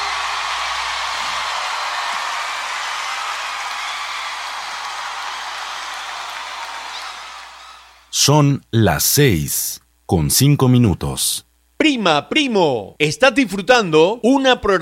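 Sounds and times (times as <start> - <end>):
loud audience applause: 0.0 - 8.1
speech: 8.2 - 14.8.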